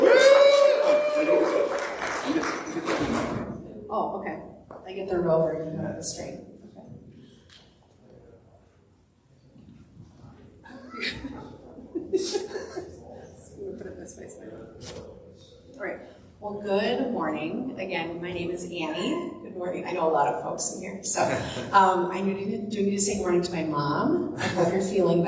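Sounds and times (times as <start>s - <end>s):
audience applause: 0.0s - 3.5s
laughter: 1.3s - 3.3s, 10.7s - 14.5s, 24.4s - 24.8s
speech: 4.9s - 6.6s, 15.8s - 25.2s.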